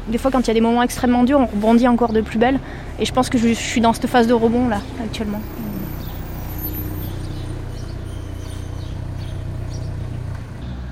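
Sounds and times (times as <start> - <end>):
speech: 0.1 - 5.7
car reversing: 1.3 - 10.9.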